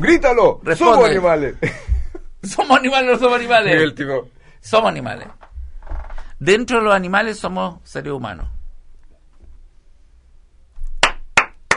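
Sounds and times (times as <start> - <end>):
speech: 0.0 - 1.8, 2.4 - 5.4, 6.4 - 8.6
sharp hand claps: 10.9 - 11.7.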